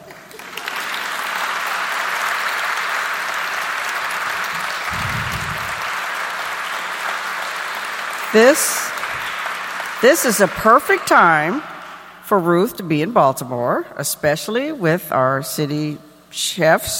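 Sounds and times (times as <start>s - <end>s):
audience applause: 0.0s - 12.0s
low rumble: 4.8s - 5.8s
speech: 8.4s - 8.8s, 10.0s - 11.7s, 12.3s - 16.9s.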